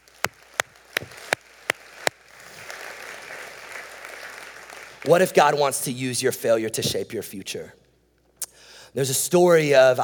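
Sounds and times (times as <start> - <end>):
audience applause: 0.0 - 5.1
speech: 5.0 - 7.8, 8.9 - 10.0.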